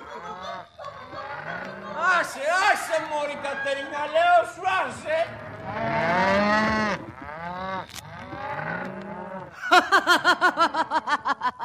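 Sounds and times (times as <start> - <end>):
laughter: 0.0 - 5.0, 9.6 - 11.6
young cattle mooing: 0.4 - 3.9, 5.3 - 9.5
speech: 2.4 - 6.9, 9.7 - 11.2.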